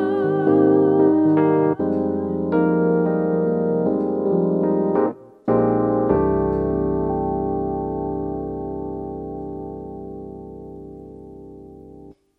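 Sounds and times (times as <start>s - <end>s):
person singing in a live lounge-style duo: 0.0s - 3.5s
lounge-style live piano: 0.0s - 12.3s.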